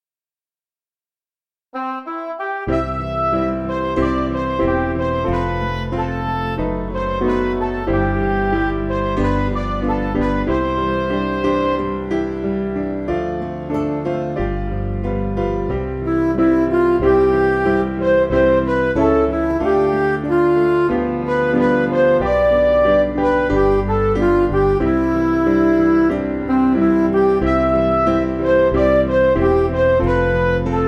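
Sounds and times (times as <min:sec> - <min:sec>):
backing music for churches: 0:02.4 - 0:30.8.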